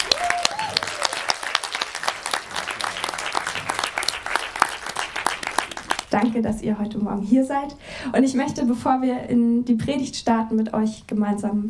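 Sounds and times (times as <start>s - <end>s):
audience applause: 0.0s - 6.2s
speech: 6.1s - 11.6s.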